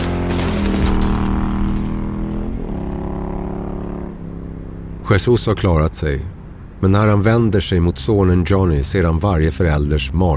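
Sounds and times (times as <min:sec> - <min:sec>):
gunfire burst: 0:00.0 - 0:02.8
motorcycle speeding away: 0:00.0 - 0:07.2
speech: 0:05.1 - 0:10.3.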